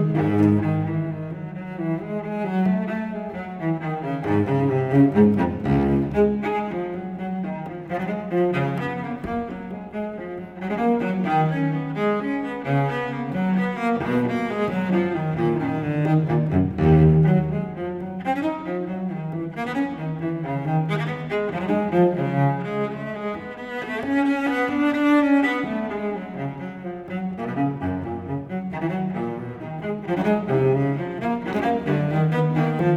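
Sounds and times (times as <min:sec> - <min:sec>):
unaccompanied cello playing a gigue: 0:00.0 - 0:32.9.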